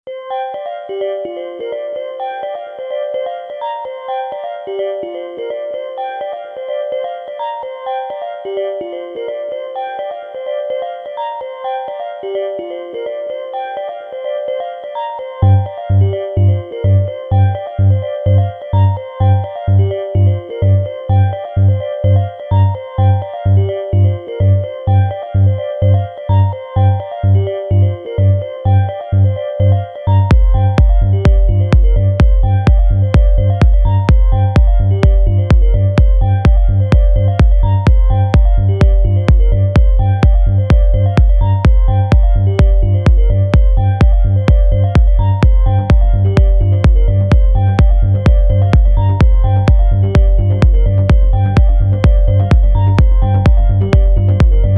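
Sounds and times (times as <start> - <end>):
remix: 0.1 - 54.7.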